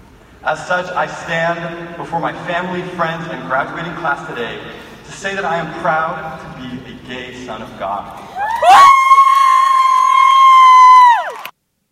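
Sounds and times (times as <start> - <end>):
speech: 0.5 - 8.9
loud high-pitched whoop: 8.3 - 11.5.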